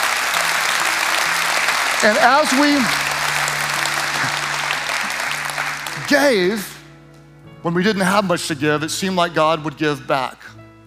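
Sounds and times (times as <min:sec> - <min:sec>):
audience applause: 0:00.0 - 0:06.9
speech: 0:02.0 - 0:03.0, 0:06.1 - 0:06.7, 0:07.6 - 0:10.6.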